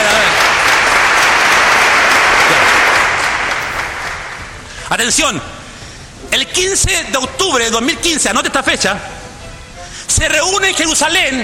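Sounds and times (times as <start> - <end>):
audience applause: 0.0 - 4.7
speech: 5.0 - 5.6, 6.6 - 9.2, 10.1 - 11.4.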